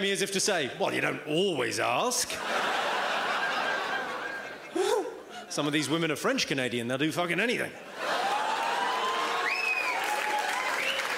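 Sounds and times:
speech: 0.0s - 2.8s, 5.5s - 8.1s
laughter: 2.2s - 6.0s, 7.8s - 9.4s
audience applause: 8.0s - 11.1s.

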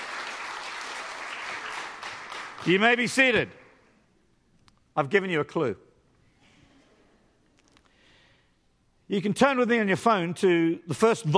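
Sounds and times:
church congregation cheering and applauding: 0.0s - 3.8s
speech: 2.6s - 3.6s, 5.0s - 5.9s, 9.1s - 11.3s.

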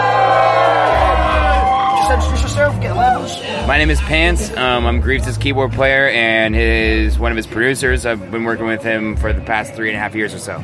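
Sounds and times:
crowd cheering and whooping for keyboard player: 0.0s - 4.5s
low rumbling: 0.0s - 8.1s
speech: 2.6s - 10.6s.

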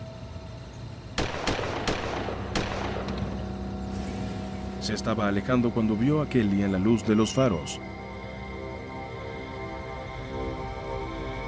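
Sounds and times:
steady low rumbling background: 0.0s - 11.4s
gunshots: 1.2s - 3.4s
speech: 4.8s - 8.0s.

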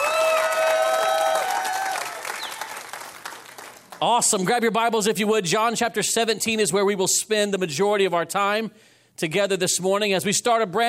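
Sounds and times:
audience applause: 0.0s - 4.1s
speech: 4.0s - 10.8s.

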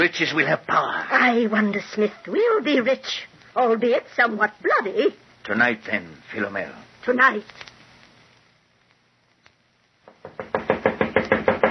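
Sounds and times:
speech: 0.0s - 7.7s
knocking on a door: 10.0s - 11.7s.

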